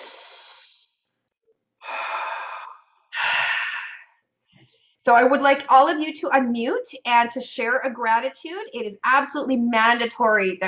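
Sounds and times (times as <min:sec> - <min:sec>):
person breathing in during a guided breathing exercise: 0:01.8 - 0:04.1
speech: 0:04.7 - 0:10.6.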